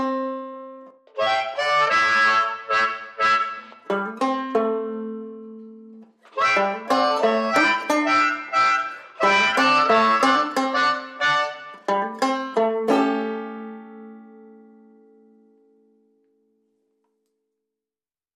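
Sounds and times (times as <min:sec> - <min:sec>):
harmonica: 0:00.0 - 0:04.3, 0:06.3 - 0:12.5
banjo playing blues: 0:00.0 - 0:15.6.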